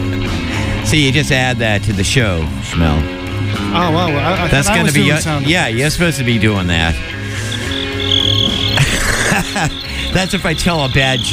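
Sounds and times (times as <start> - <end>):
speech: 0.9 - 7.2, 9.4 - 11.3
laughter: 3.8 - 6.2, 7.0 - 11.3
crickets chirping sound effect: 6.9 - 11.3.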